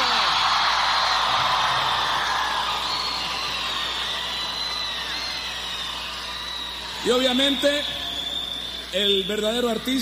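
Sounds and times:
crowd of young people shouting: 0.0 - 7.8
speech: 7.0 - 8.0, 8.9 - 10.0.

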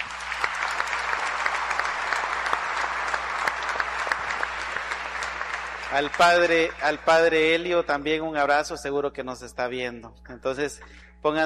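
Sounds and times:
audience applause: 0.0 - 7.4
speech: 5.9 - 11.4.

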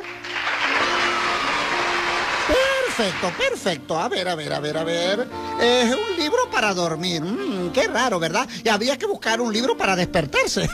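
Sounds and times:
applause: 0.0 - 3.6
speech: 2.5 - 10.7.

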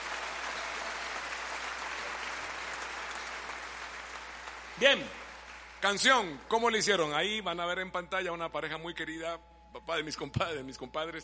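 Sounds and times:
applause: 0.0 - 6.4
speech: 4.8 - 5.2, 5.8 - 11.2.

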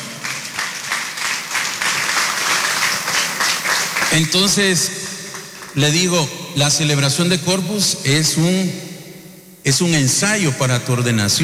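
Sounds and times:
crowd applause: 0.0 - 5.8
speech: 4.1 - 5.0, 5.8 - 8.9, 9.6 - 11.4.

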